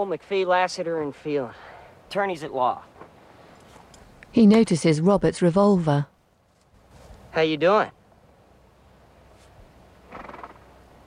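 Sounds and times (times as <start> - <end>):
speech: 0.0 - 3.0, 4.3 - 6.1, 7.4 - 8.0
horse whinnying: 10.1 - 10.6.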